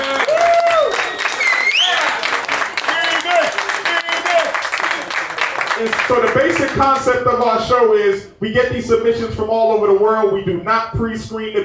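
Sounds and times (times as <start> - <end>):
audience cheering and whooping: 0.0 - 5.5
live audience applauding: 0.0 - 7.5
speech: 6.1 - 11.6.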